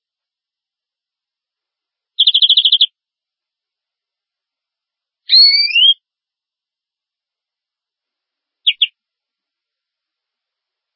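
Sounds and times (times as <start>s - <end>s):
domestic canary chirps: 2.2s - 2.9s, 5.3s - 6.0s, 8.6s - 9.0s.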